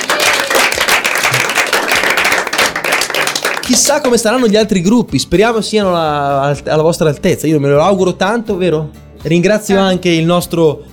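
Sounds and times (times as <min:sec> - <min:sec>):
small round of applause: 0:00.0 - 0:04.5
speech: 0:03.7 - 0:10.9.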